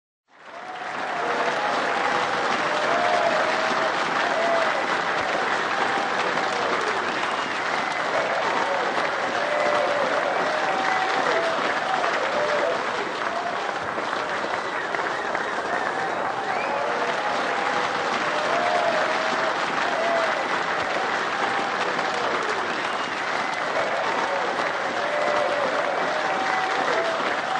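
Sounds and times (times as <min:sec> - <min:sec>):
applause: 0:00.3 - 0:27.5.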